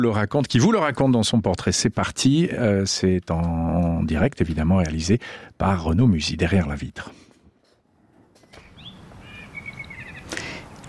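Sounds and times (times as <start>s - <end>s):
speech: 0.0s - 7.2s
blackbird singing: 8.6s - 10.4s.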